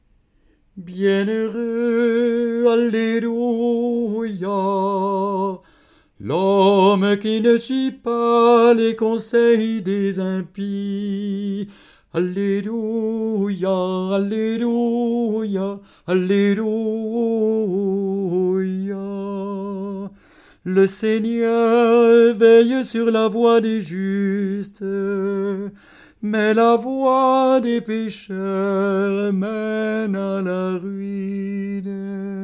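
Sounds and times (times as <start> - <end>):
sacred vocal piece: 0.8 - 32.4.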